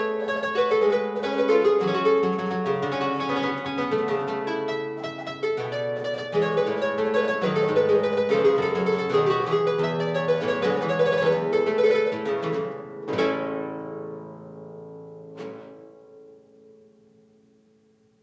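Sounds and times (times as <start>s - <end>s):
harpsichord gigue in B flat: 0.0s - 13.7s.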